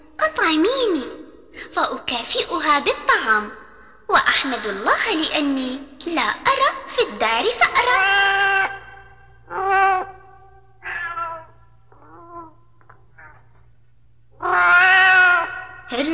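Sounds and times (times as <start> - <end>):
low steady hum: 0.0 - 16.1
speech: 0.3 - 8.5, 15.9 - 16.1
hungry cat meowing: 7.9 - 8.9, 9.5 - 10.2, 10.8 - 12.6, 13.2 - 13.5, 14.4 - 15.9.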